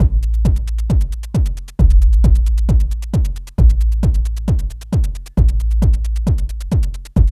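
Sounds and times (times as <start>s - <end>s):
industrial techno music: 0.0s - 7.3s.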